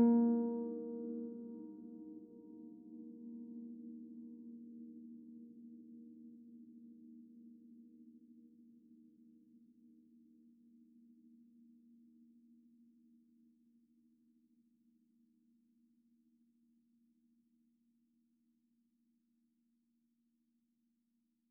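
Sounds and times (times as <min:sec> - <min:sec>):
sine wave tones: 0:00.1 - 0:16.6.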